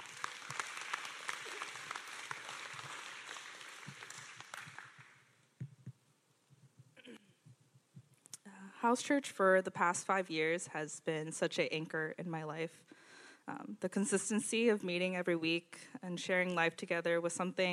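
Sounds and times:
audience clapping: 0:00.0 - 0:05.4
speech: 0:08.8 - 0:17.7.

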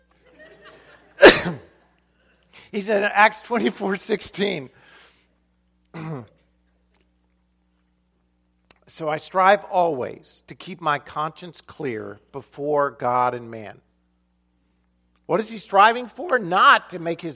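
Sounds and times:
laughter: 0:00.0 - 0:01.2
person coughing after swallowing the wrong way: 0:01.2 - 0:01.8, 0:06.0 - 0:06.4
speech: 0:01.4 - 0:01.6, 0:02.7 - 0:04.8, 0:09.0 - 0:13.8, 0:15.3 - 0:17.3
man speaking calmly: 0:02.6 - 0:04.8, 0:08.7 - 0:13.9, 0:15.2 - 0:17.3.

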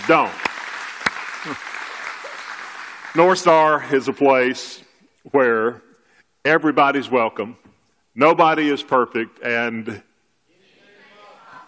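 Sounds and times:
audience giving a praise clap: 0:00.0 - 0:04.1
speech: 0:00.1 - 0:00.4, 0:01.4 - 0:01.7, 0:03.1 - 0:10.1.

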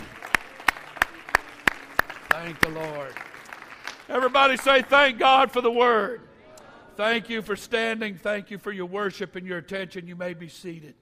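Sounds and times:
audience clapping hands: 0:00.0 - 0:05.9
speech: 0:02.4 - 0:03.3, 0:04.1 - 0:06.3, 0:07.0 - 0:10.9.

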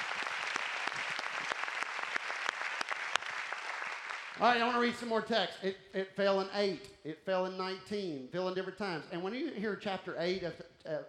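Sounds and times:
audience hand clapping: 0:00.0 - 0:05.1
speech: 0:04.4 - 0:11.0.

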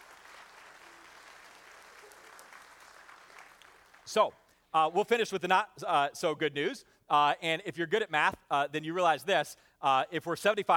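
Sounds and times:
audience clapping: 0:00.0 - 0:04.2
speech: 0:04.1 - 0:10.7.

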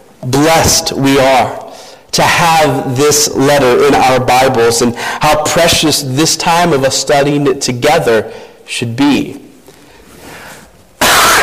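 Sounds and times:
speech: 0:00.2 - 0:09.4
cough into microphone: 0:11.0 - 0:11.4.

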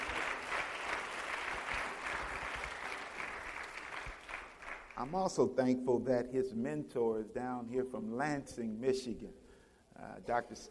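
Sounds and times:
audience hand clapping: 0:00.0 - 0:05.2
speech: 0:05.0 - 0:09.4, 0:10.0 - 0:10.7.

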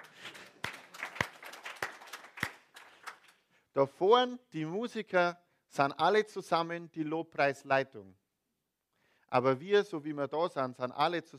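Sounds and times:
audience clapping: 0:00.0 - 0:03.5
speech: 0:03.8 - 0:08.2, 0:09.3 - 0:11.3.

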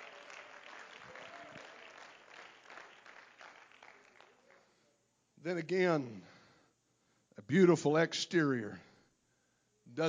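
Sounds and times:
audience clapping: 0:00.0 - 0:04.8
speech: 0:05.4 - 0:06.3, 0:07.5 - 0:08.9.

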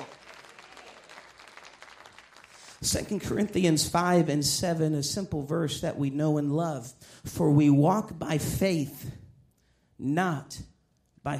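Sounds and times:
audience clapping hands: 0:00.0 - 0:04.0
speech: 0:02.8 - 0:09.2, 0:10.0 - 0:11.3.

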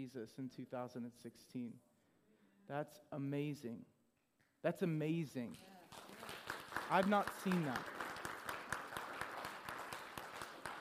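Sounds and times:
speech: 0:00.0 - 0:01.9, 0:02.7 - 0:04.0, 0:04.6 - 0:06.3, 0:06.9 - 0:08.0
crowd applauding: 0:05.9 - 0:10.7.

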